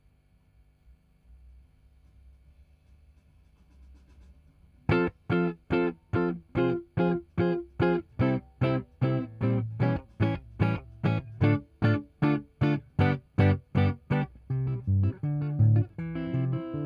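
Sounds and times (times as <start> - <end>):
guitar: 4.9 - 16.8.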